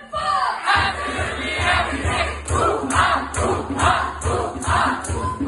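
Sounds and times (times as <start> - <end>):
chanting: 0.2 - 5.4.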